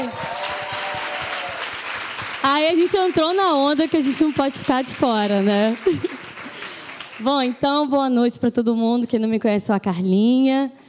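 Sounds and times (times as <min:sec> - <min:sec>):
crowd applauding: 0:00.0 - 0:07.8
speech: 0:02.4 - 0:06.2, 0:07.2 - 0:10.8
laughter: 0:05.8 - 0:06.6.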